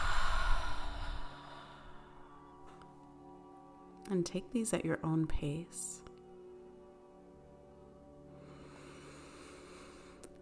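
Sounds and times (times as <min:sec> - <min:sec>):
deep cleansing breath exhale during a guided mindfulness exercise: 0:00.0 - 0:02.6, 0:08.4 - 0:10.3
speech: 0:04.1 - 0:06.1.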